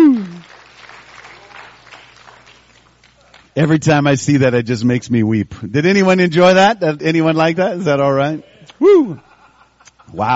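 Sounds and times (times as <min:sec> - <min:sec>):
audience applause in a church: 0:00.0 - 0:03.5
speech: 0:03.6 - 0:09.3, 0:10.1 - 0:10.3.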